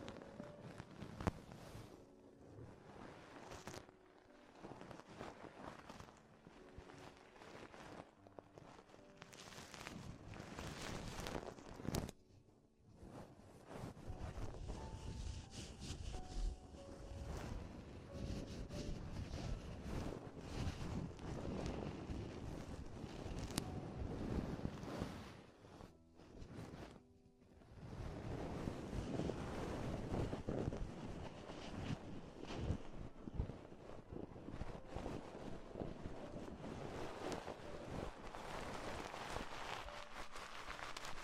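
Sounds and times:
crackly rubbing and scratching across the microphone: 0:00.0 - 0:41.2.

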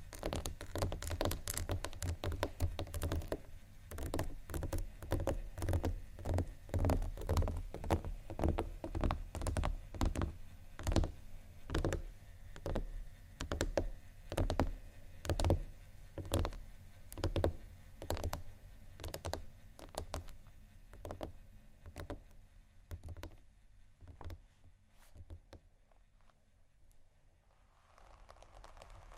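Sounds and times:
sharp taps and knocks on a surface: 0:00.0 - 0:20.4, 0:21.0 - 0:22.3.

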